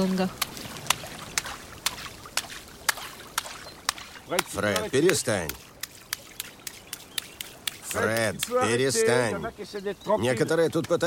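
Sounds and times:
speech: 0:00.0 - 0:00.5, 0:04.3 - 0:05.7, 0:07.9 - 0:11.0
rhythmic splashing in swimming pool water at the pool's edge: 0:00.0 - 0:08.7.

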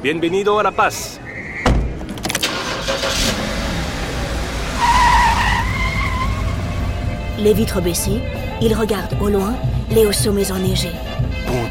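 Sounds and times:
speech: 0:00.0 - 0:01.4, 0:07.4 - 0:11.7
door-like thump: 0:01.6 - 0:02.2
taxi car pulling away: 0:02.4 - 0:08.6.

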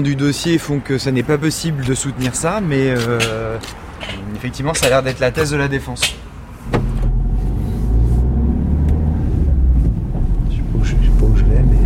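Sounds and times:
speech: 0:00.0 - 0:06.9
car driving, heard from inside: 0:06.6 - 0:11.8.

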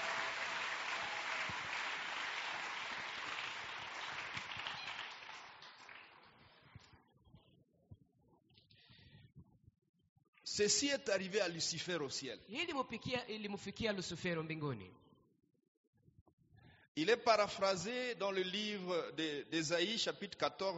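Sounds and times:
congregation applauding during a French and Swahili church sermon: 0:00.0 - 0:06.7
speech: 0:10.6 - 0:15.0, 0:17.0 - 0:20.7.

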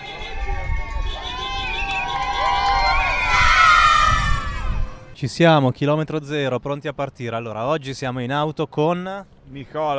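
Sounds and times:
crowd of spectators cheering and shouting in a small village street: 0:00.1 - 0:04.9
speech: 0:05.2 - 0:09.9.

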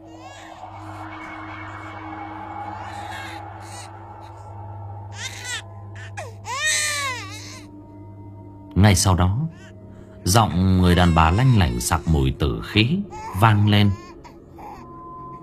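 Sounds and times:
children crying: 0:00.0 - 0:07.6, 0:10.8 - 0:12.3
ghostly wailing: 0:00.0 - 0:15.4
speech: 0:08.8 - 0:09.6, 0:10.3 - 0:14.0.

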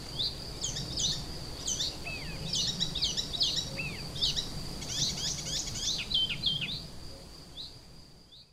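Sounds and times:
icterine warbler calling: 0:00.1 - 0:06.8.

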